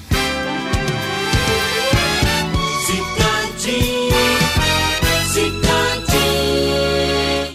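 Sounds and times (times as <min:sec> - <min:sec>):
jingle: 0:00.2 - 0:07.5.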